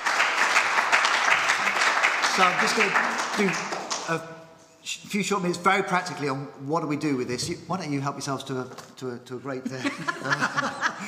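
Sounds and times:
audience applause: 0:00.0 - 0:04.2
speech: 0:02.4 - 0:11.0
laughter: 0:09.6 - 0:11.0.

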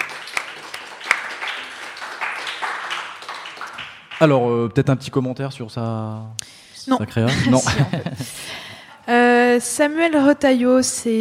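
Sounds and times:
applause: 0:00.0 - 0:04.5
speech: 0:04.2 - 0:11.1
laughter: 0:07.2 - 0:08.6.

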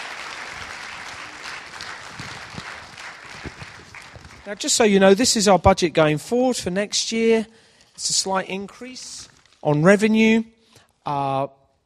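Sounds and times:
crowd applause: 0:00.0 - 0:04.7
speech: 0:04.5 - 0:11.6.

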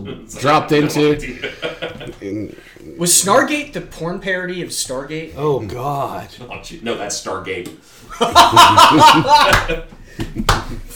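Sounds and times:
laughter: 0:00.0 - 0:02.7, 0:08.1 - 0:10.9
speech: 0:00.0 - 0:10.0
slow clap: 0:09.2 - 0:10.9.

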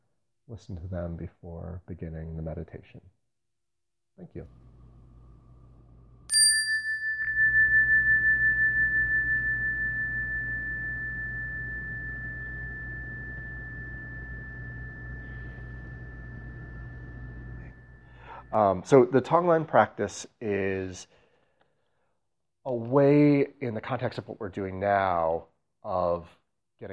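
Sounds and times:
speech: 0:00.5 - 0:03.2, 0:04.2 - 0:04.7, 0:18.5 - 0:21.2, 0:22.6 - 0:26.9
low steady hum: 0:04.3 - 0:18.8
meditation bell struck: 0:06.3 - 0:18.6.

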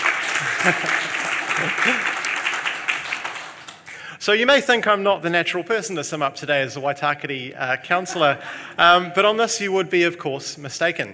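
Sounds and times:
crowd applauding: 0:00.0 - 0:04.1
laughter: 0:00.2 - 0:02.5, 0:07.9 - 0:09.2
speech: 0:00.4 - 0:02.2, 0:04.2 - 0:11.1.

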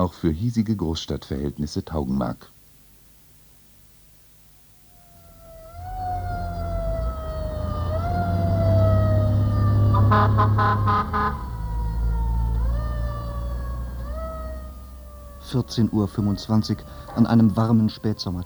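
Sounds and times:
speech: 0:00.0 - 0:02.6, 0:15.5 - 0:18.4
fire engine siren: 0:05.0 - 0:18.4.

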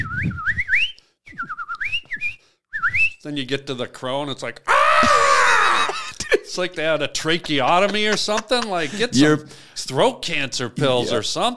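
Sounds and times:
person whistling a warbling birdlike melody: 0:00.0 - 0:03.2
speech: 0:00.2 - 0:00.5, 0:03.2 - 0:11.5
laughter: 0:05.0 - 0:09.4.

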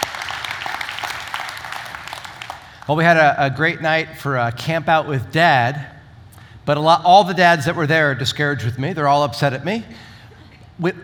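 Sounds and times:
audience clapping: 0:00.0 - 0:03.0
speech: 0:02.9 - 0:05.9, 0:06.7 - 0:10.1, 0:10.8 - 0:11.0.

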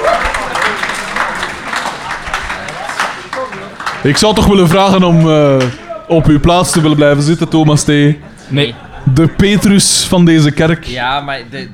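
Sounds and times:
audience applause for the presenters at an event in a church: 0:00.0 - 0:04.8
speech: 0:04.0 - 0:11.7.

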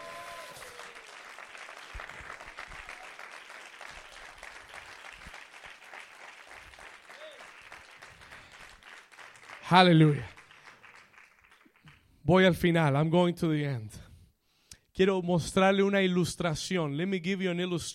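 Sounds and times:
audience applause: 0:00.0 - 0:12.0
speech: 0:09.7 - 0:10.3, 0:12.3 - 0:14.0, 0:15.0 - 0:17.9.

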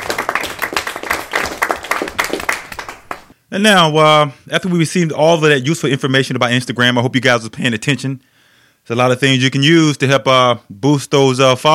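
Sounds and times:
applause: 0:00.0 - 0:03.3
speech: 0:03.5 - 0:11.7.

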